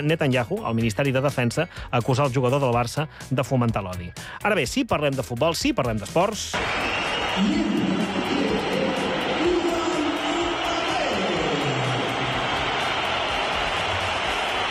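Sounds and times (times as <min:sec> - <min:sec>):
speech: 0:00.0 - 0:08.4
stadium crowd whistling and booing at the Bernabéu: 0:06.5 - 0:14.6.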